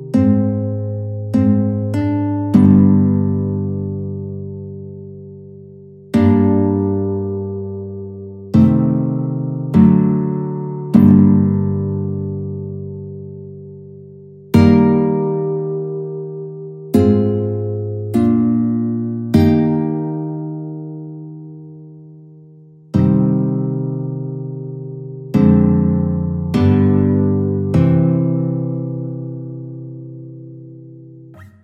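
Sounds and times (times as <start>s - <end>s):
march played on guitar: 0.0s - 31.6s.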